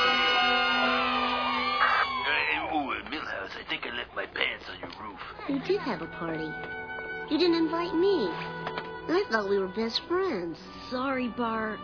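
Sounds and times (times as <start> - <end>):
children cheering and whooping at a school assembly: 0.0 - 2.5
children applauding at a school assembly: 0.0 - 2.8
speech: 5.5 - 11.8.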